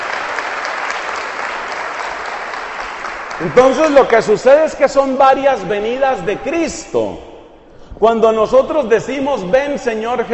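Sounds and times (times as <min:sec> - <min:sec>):
audience applause: 0:00.0 - 0:04.4
speech: 0:03.4 - 0:07.3, 0:08.0 - 0:10.3.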